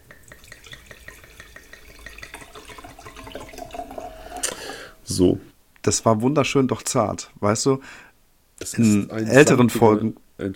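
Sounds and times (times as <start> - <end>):
wine pouring into a glass: 0.0 - 5.1
speech: 5.1 - 10.5.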